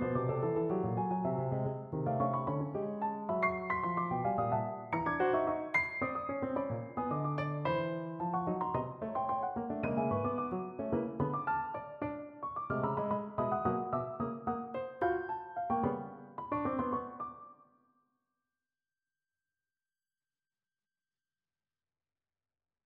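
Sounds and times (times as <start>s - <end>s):
short piano pieces: 0.0s - 17.6s.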